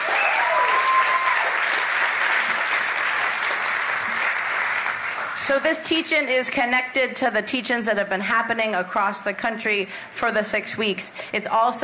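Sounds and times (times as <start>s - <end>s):
audience applause: 0.0s - 5.4s
speech: 5.5s - 11.8s.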